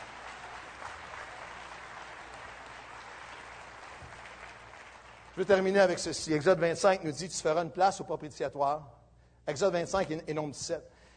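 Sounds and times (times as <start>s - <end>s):
audience applauding: 0.0s - 5.9s
speech: 5.4s - 11.0s.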